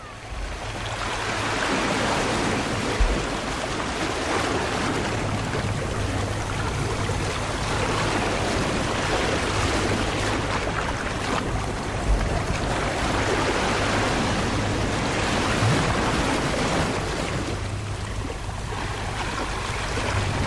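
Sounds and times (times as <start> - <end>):
ocean waves breaking on the shore at Pedregalejo beach in Málaga: 0.0 - 20.4.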